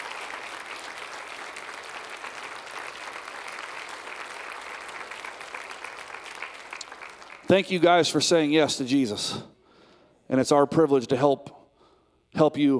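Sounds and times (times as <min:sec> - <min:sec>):
church congregation applauding a retired missionary couple: 0:00.0 - 0:08.4
speech: 0:07.5 - 0:09.5, 0:10.3 - 0:11.6, 0:12.4 - 0:12.7.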